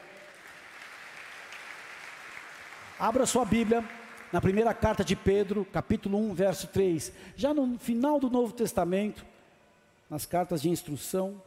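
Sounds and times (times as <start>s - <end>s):
audience applauding: 0.0s - 5.2s
speech: 3.0s - 9.3s, 10.1s - 11.4s.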